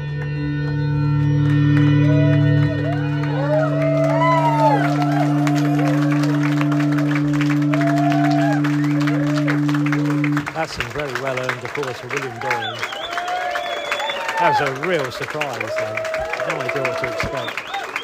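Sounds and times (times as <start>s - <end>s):
low droning hum: 0.0s - 12.7s
crowd clapping: 0.0s - 18.0s
speech: 10.7s - 13.0s, 14.4s - 17.8s.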